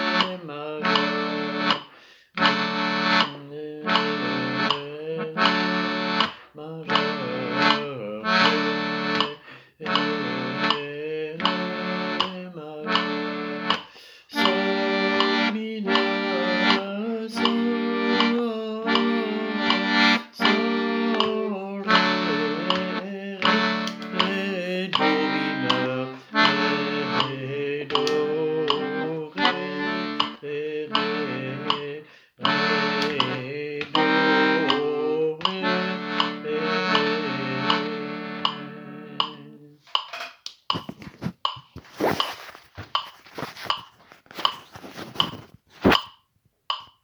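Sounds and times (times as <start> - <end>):
rhythmic accompaniment: 0.0 - 47.0.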